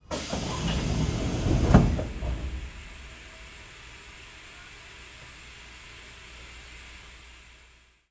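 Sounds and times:
old train door closing: 0.0 - 5.8.

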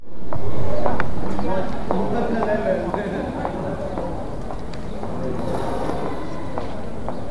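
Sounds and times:
footsteps: 0.3 - 7.2.

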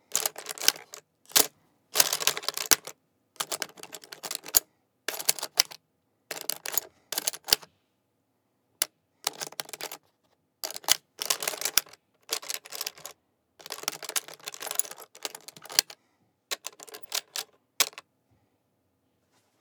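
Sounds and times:
metal lock rattling: 0.1 - 7.6, 10.6 - 18.0.

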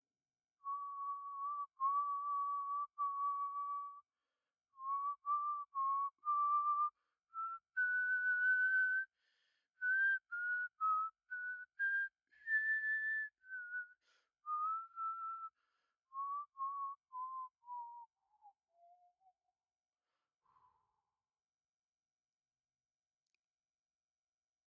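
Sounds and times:
man whistling: 0.6 - 4.1, 4.8 - 19.4.

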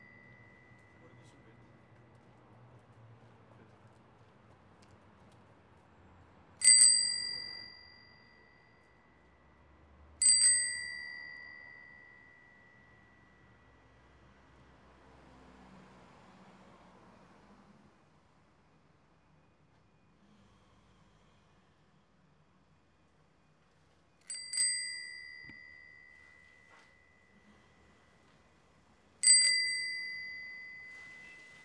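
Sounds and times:
bicycle bell: 0.0 - 1.7, 6.6 - 9.2, 10.2 - 14.0, 24.2 - 27.8, 29.2 - 31.6.

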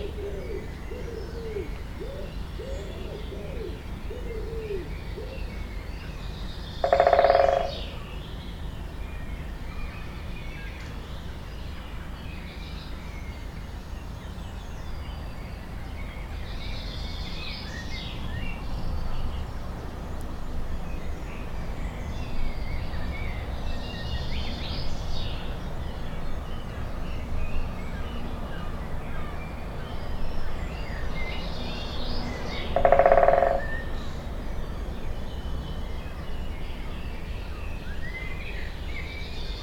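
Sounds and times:
songbirds chirping: 0.0 - 39.6
woodpecker drumming: 6.8 - 8.0, 32.7 - 33.9.

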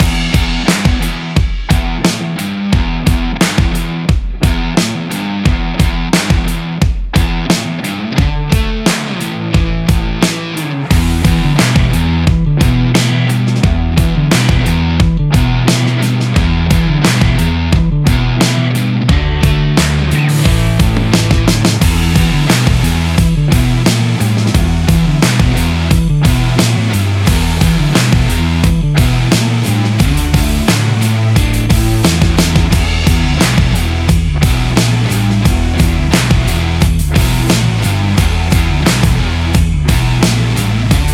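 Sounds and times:
sport rock trailer music loop: 0.0 - 41.1.

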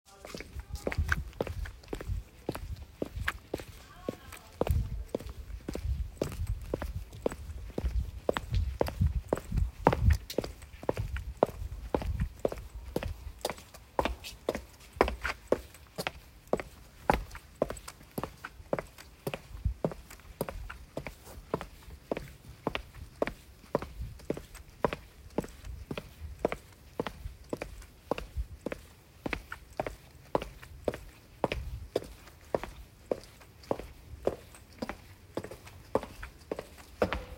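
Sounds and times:
woman's high heels footsteps at night: 0.1 - 37.3.

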